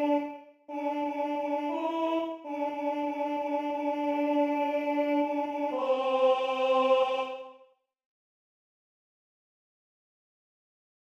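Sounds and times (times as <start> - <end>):
contralto voices singing: 0.0 - 7.7.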